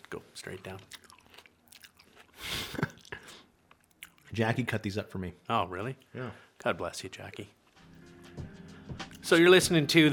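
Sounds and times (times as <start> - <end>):
chewing juicy plum: 0.0 - 4.4
speech: 0.1 - 1.1, 4.3 - 7.6, 9.3 - 10.1.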